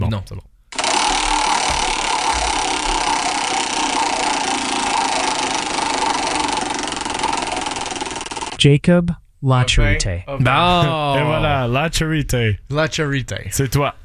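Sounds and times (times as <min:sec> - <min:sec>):
speech: 0:00.1 - 0:00.5, 0:08.6 - 0:14.0
roulette wheel spinning: 0:00.7 - 0:08.6.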